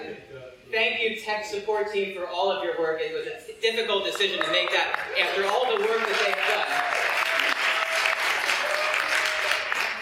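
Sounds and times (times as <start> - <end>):
speech: 0.7 - 7.3
audience applause: 4.1 - 9.9.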